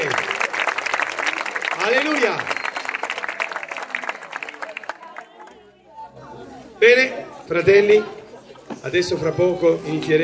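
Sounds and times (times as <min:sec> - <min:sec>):
audience applauding children: 0:00.0 - 0:05.6
speech: 0:02.0 - 0:02.6, 0:06.8 - 0:08.2, 0:08.8 - 0:10.2.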